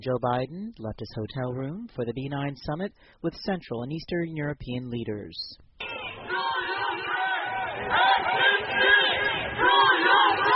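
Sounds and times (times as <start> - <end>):
speech: 0.0 - 7.0, 7.8 - 8.9
protesters shouting along motorcade route: 5.8 - 10.5.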